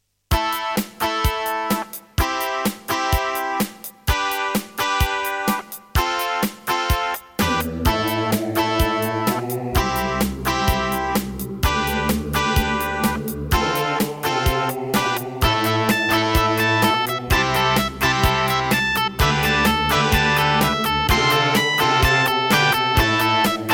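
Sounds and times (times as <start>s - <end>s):
Roland SC-33 synthesizer: 0.4s - 23.7s.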